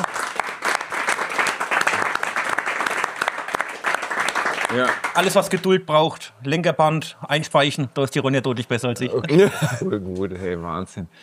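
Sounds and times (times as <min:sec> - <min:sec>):
group applauding: 0:00.0 - 0:05.8
speech: 0:04.7 - 0:11.2
laughter: 0:09.0 - 0:10.1.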